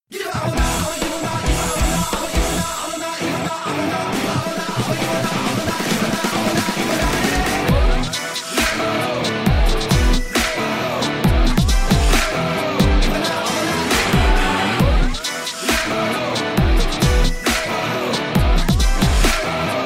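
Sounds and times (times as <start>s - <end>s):
fight theme background music ringtone: 0.3s - 19.8s.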